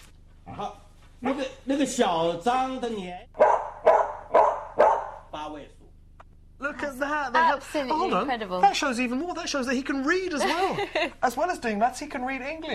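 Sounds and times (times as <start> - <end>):
speech: 0.6 - 3.4, 7.1 - 12.7
dog barking the digits of a number: 3.4 - 5.3
laughter: 10.3 - 11.4.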